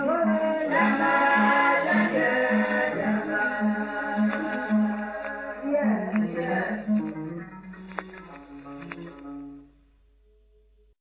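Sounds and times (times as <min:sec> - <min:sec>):
djembe drumming: 0:00.6 - 0:07.1.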